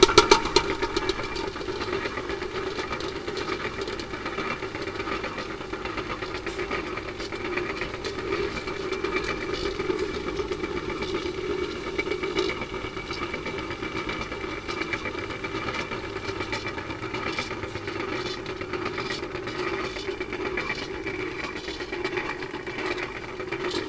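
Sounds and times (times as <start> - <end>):
kettle: 0.0 - 23.8.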